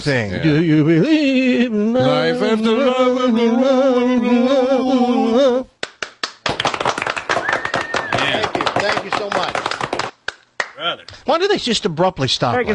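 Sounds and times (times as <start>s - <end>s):
speech: 0.0s - 5.7s, 10.9s - 12.7s
applause: 5.8s - 10.8s.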